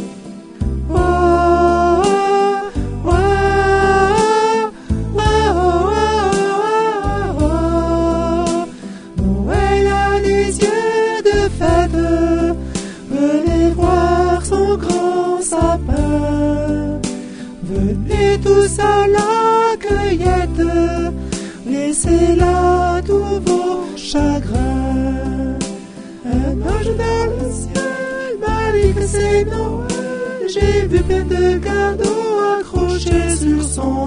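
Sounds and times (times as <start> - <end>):
soprano singing: 0.7 - 34.0.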